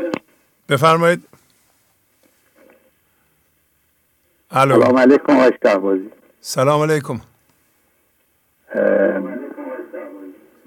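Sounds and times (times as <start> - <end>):
television playing in background over phone: 0.0 - 0.4, 4.5 - 6.4, 8.1 - 10.6
speech: 0.7 - 1.3, 4.5 - 7.3, 8.7 - 9.2.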